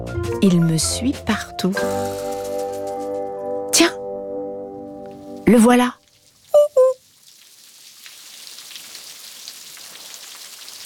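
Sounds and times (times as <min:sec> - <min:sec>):
speech: 0:00.1 - 0:02.3, 0:03.8 - 0:04.0, 0:05.5 - 0:06.0
rain falling: 0:01.8 - 0:03.3, 0:05.0 - 0:10.8.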